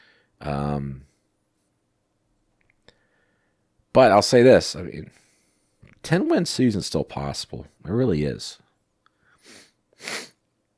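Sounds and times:
speech: 0.4 - 1.1, 4.0 - 5.2, 6.0 - 8.6
person sniffling from a cold: 9.4 - 10.4.

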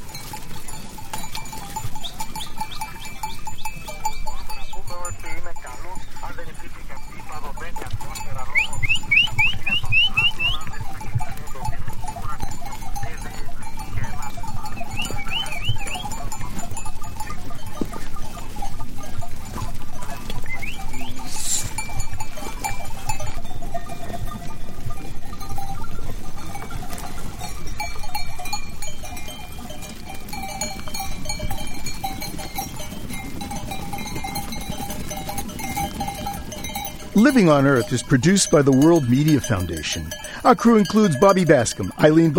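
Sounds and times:
clanking bells: 0.0 - 42.3
sheep and goats bleating at winter festival: 0.1 - 42.3
short high chirps: 8.5 - 10.6, 14.8 - 16.1
speech: 37.2 - 42.3.

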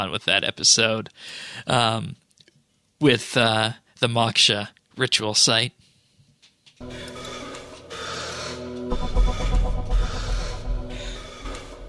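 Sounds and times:
speech: 0.0 - 2.2, 3.0 - 5.8, 6.8 - 7.2
breathing of people meditating: 1.2 - 1.7, 5.8 - 11.8
steady humming drone: 6.8 - 11.8.

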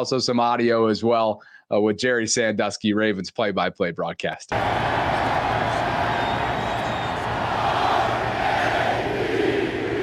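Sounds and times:
speech: 0.0 - 5.2
large stadium crowd roaring and chanting: 4.5 - 10.0.

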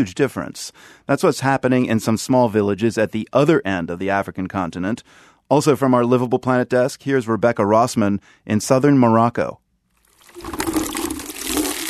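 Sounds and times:
speech: 0.0 - 9.6
water running from a tap: 10.0 - 11.8.

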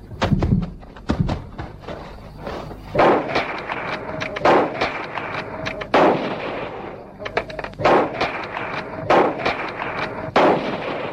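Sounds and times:
gunshots from a hunting rifle: 2.9 - 7.2, 7.8 - 11.1.

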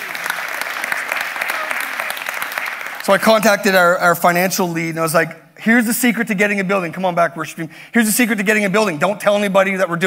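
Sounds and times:
audience applause: 0.0 - 3.6
speech: 3.1 - 10.0.

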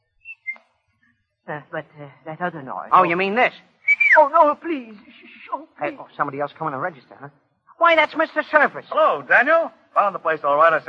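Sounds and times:
short appreciative whistle: 0.1 - 0.8, 3.8 - 4.3
speech: 1.5 - 10.8.

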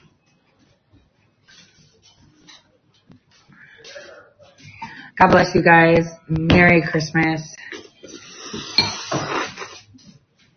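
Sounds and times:
speech: 5.2 - 7.5
slurping cereal and milk from a bowl: 8.1 - 9.9.

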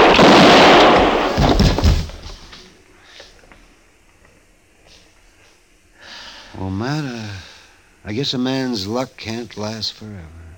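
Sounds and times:
gunfire in a Western-style standoff: 0.0 - 2.2
speech: 8.1 - 10.4.

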